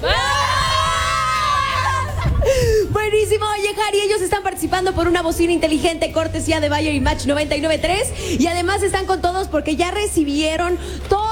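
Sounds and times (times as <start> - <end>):
group of team supporters yelling a cheer in unison: 0.0 - 2.3
speech: 3.6 - 11.3.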